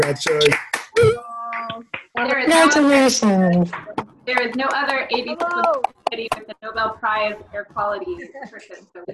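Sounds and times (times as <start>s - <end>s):
speech: 0.0s - 1.2s, 2.3s - 9.1s
online meeting participants clapping: 0.0s - 6.5s
overlapping voices: 0.0s - 9.1s.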